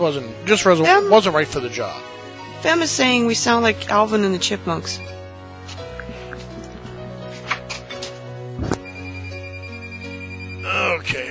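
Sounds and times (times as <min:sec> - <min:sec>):
speech: 0:00.0 - 0:05.2
phone ringtone electronic melody: 0:04.8 - 0:05.2, 0:08.8 - 0:10.9.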